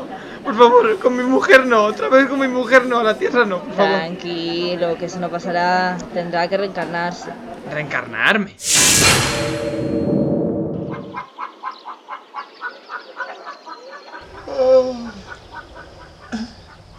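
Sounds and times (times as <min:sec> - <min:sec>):
speech: 0:00.4 - 0:09.9
loud whooshing: 0:08.6 - 0:11.2.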